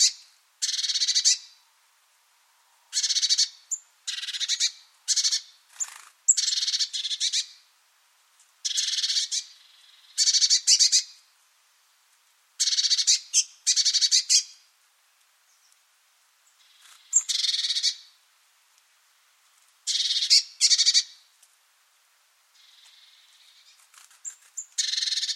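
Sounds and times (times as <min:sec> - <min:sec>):
harsh buzzy high-pitched bird calls: 0:00.0 - 0:01.6, 0:02.9 - 0:07.6, 0:08.6 - 0:11.1, 0:12.6 - 0:14.6, 0:16.5 - 0:18.2, 0:19.9 - 0:21.2, 0:22.6 - 0:25.3.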